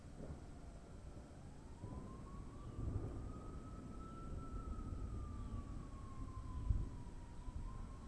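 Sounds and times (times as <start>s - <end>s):
summer thunder at dusk: 0.2s - 8.0s.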